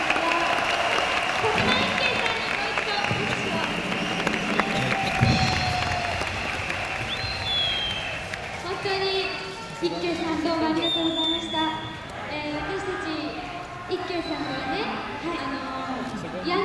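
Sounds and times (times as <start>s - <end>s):
voices: 0.0s - 7.7s, 8.3s - 16.6s
audience applause on a 1970s Japanese radio show: 0.0s - 11.3s.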